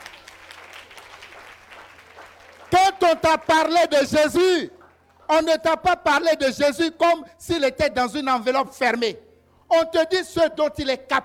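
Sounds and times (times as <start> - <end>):
church congregation applauding: 0.0 - 5.4
speech: 3.1 - 11.2.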